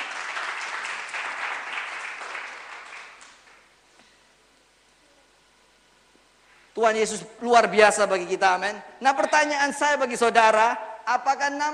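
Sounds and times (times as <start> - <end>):
audience applause: 0.0 - 3.7
speech: 6.8 - 11.7.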